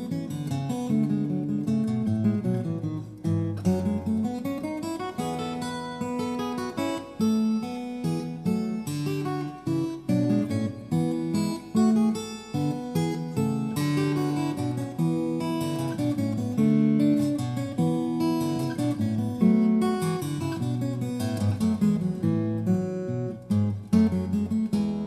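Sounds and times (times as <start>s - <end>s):
recercar on steel string guitar: 0.0s - 25.0s.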